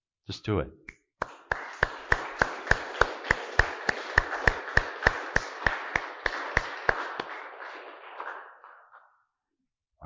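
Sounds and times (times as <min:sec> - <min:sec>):
speech: 0:00.3 - 0:00.8
audience clapping hands: 0:01.2 - 0:09.2.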